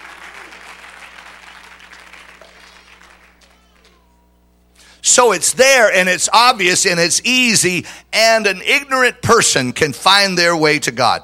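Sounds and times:
audience clapping hands: 0:00.0 - 0:04.0
speech: 0:05.1 - 0:11.2.

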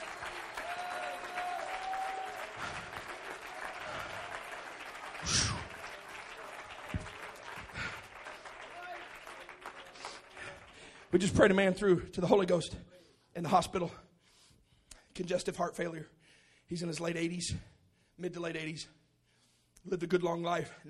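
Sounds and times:
audience clapping hands: 0:00.0 - 0:11.7
speech: 0:11.2 - 0:14.0, 0:15.2 - 0:19.0, 0:19.8 - 0:20.8.

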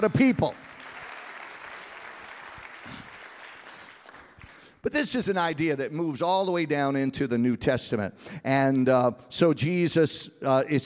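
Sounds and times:
speech: 0:00.0 - 0:00.6, 0:04.8 - 0:10.8
audience clapping: 0:00.0 - 0:04.8.

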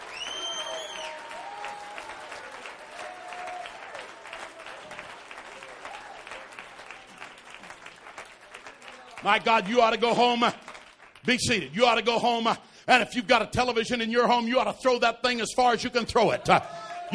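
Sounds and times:
audience clapping hands: 0:00.0 - 0:12.5
speech: 0:09.2 - 0:10.6, 0:11.2 - 0:17.1.

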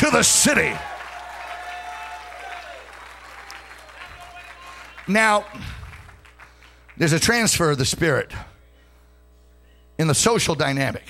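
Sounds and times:
audience clapping hands: 0:00.0 - 0:07.6
speech: 0:00.1 - 0:01.0, 0:05.1 - 0:05.8, 0:07.0 - 0:08.5, 0:10.0 - 0:11.0.

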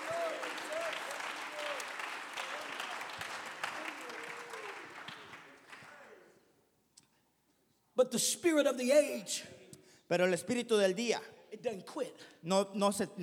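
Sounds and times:
audience clapping hands: 0:00.0 - 0:06.3
speech: 0:08.0 - 0:13.2.

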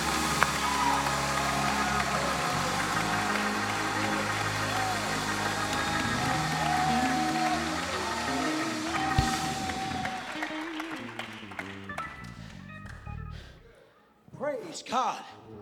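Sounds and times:
murmur of crowd voices: 0:00.0 - 0:10.8
audience clapping hands: 0:00.0 - 0:13.2
sustained low instrumental tones: 0:07.8 - 0:13.8.

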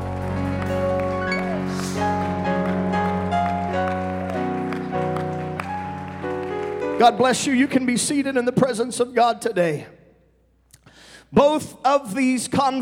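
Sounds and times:
audience clapping in praise: 0:00.0 - 0:08.0
sustained organ chords: 0:00.0 - 0:08.4
speech: 0:07.0 - 0:10.0, 0:11.3 - 0:12.7.

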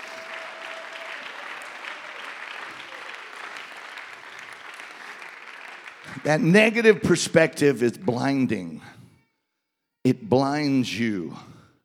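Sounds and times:
audience clapping: 0:00.0 - 0:07.2
speech: 0:06.2 - 0:09.0, 0:10.0 - 0:11.5.

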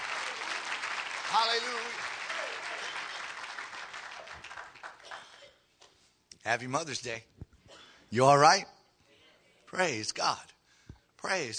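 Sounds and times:
audience clapping hands: 0:00.0 - 0:05.5
speech: 0:01.3 - 0:03.0, 0:06.4 - 0:07.3, 0:08.1 - 0:08.8, 0:09.7 - 0:10.5, 0:11.2 - 0:11.5.

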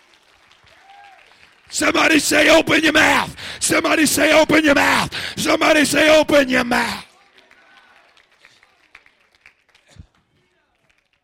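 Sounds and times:
audience clapping hands: 0:00.0 - 0:03.6, 0:06.6 - 0:11.2
speech: 0:01.7 - 0:07.1.

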